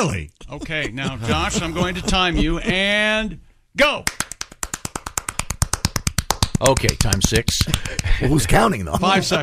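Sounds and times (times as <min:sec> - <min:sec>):
speech: 0:00.0 - 0:04.3, 0:06.6 - 0:09.4
laughter: 0:00.1 - 0:03.3, 0:07.7 - 0:09.4
rapid hand clapping: 0:04.0 - 0:08.2.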